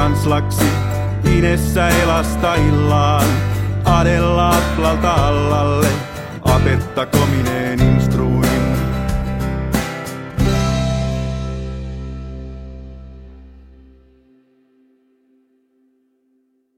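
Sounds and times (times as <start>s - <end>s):
drums: 0.0s - 12.2s.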